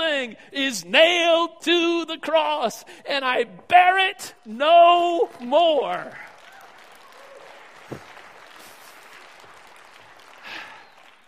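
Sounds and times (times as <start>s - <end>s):
speech: 0.2s - 6.3s
audience clapping: 5.1s - 11.2s.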